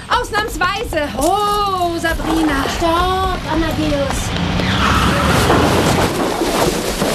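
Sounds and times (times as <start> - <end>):
speech: 0.3 - 6.7
car crashing into a hay wagon: 4.8 - 7.1.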